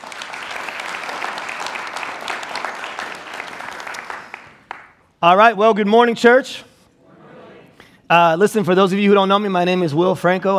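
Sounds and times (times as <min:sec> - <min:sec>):
crowd applauding: 0:00.0 - 0:05.0
speech: 0:05.2 - 0:06.7, 0:08.1 - 0:10.5.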